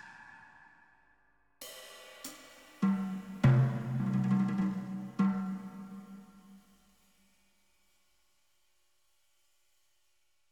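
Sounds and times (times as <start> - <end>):
drum kit: 1.6 - 6.2.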